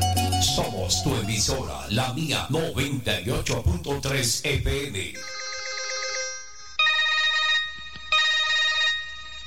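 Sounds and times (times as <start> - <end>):
speech: 0.4 - 5.4
mobile phone ringing with a melodic electronic ringtone: 5.2 - 9.4.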